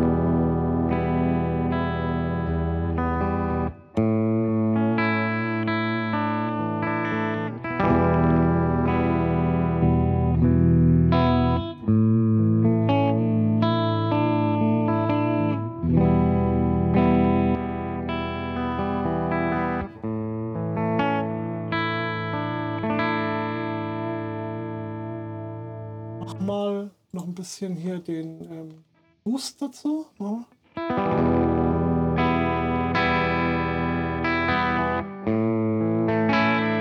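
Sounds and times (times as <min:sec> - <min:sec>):
electric guitar played through a Uni-Vibe effect pedal behind the amp: 0:00.0 - 0:26.2, 0:30.8 - 0:36.8
speech: 0:27.2 - 0:31.0.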